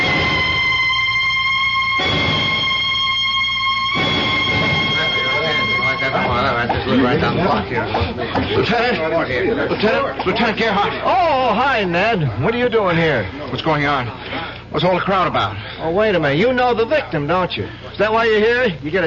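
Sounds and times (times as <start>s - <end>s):
police car sirens approaching: 0.0s - 8.5s
laughter: 4.6s - 11.4s
speech: 7.7s - 19.0s.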